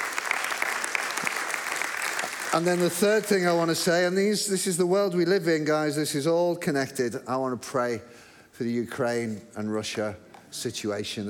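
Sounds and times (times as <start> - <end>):
round of applause: 0.0 - 3.9
speech: 2.5 - 11.2.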